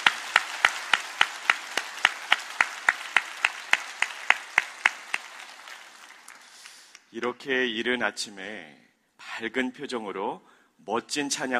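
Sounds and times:
audience clapping in steady unison: 0.0s - 7.1s
speech: 7.1s - 11.5s.

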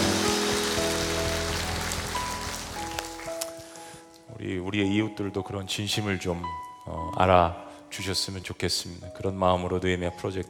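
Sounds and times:
audience applause: 0.0s - 3.5s
speech: 4.4s - 10.4s.

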